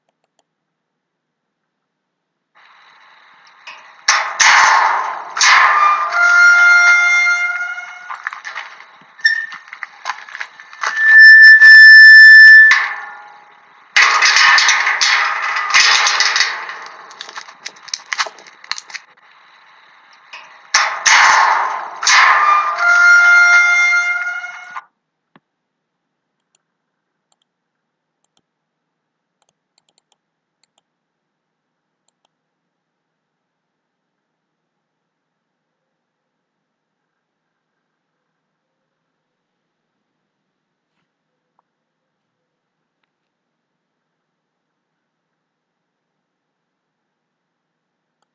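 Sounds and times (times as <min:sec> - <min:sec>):
gate: 0:02.6 - 0:24.9.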